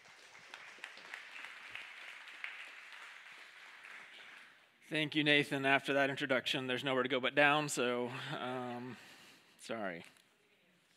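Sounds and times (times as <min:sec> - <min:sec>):
audience applause welcoming a speaker: 0:00.0 - 0:04.6
speech: 0:04.9 - 0:10.2.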